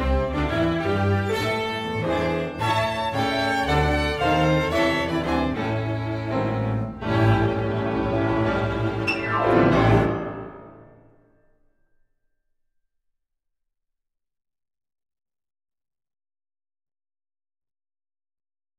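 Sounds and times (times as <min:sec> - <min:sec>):
blues music: 0:00.0 - 0:11.2.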